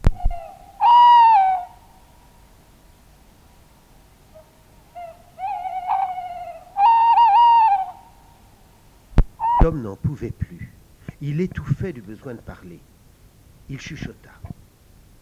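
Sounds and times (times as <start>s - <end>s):
tawny owl hooting: 0.0s - 2.4s, 4.3s - 9.9s
speech: 9.6s - 12.9s, 13.7s - 14.4s.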